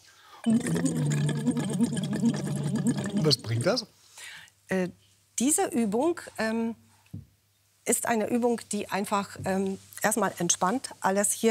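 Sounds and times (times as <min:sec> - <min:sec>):
blowing bubbles while making a voice tone: 0:00.4 - 0:03.6
speech: 0:00.4 - 0:04.0, 0:04.7 - 0:07.2, 0:07.9 - 0:11.4.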